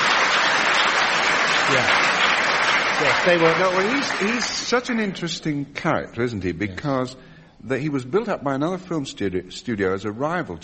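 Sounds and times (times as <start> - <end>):
applause: 0.0 - 5.3
speech: 1.7 - 2.0, 3.0 - 10.6.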